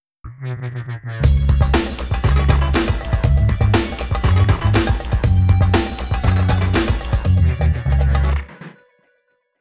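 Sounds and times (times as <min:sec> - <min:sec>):
jingle: 0:02.0 - 0:09.5.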